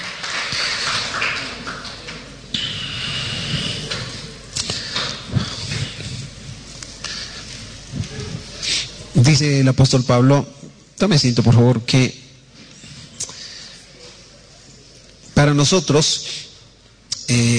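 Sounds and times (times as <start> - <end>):
audience applauding: 0.0 - 2.5
speech: 9.2 - 12.2, 15.4 - 16.4, 17.3 - 17.5.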